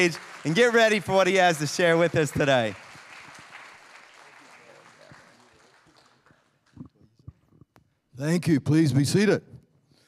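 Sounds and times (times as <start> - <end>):
speech: 0.0 - 2.8, 8.2 - 9.5
audience applauding: 0.0 - 6.9.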